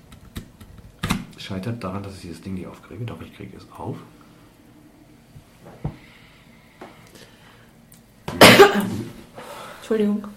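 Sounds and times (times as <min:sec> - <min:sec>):
speech: 0:01.4 - 0:04.2, 0:09.9 - 0:10.3
person coughing into a microphone: 0:08.3 - 0:09.2.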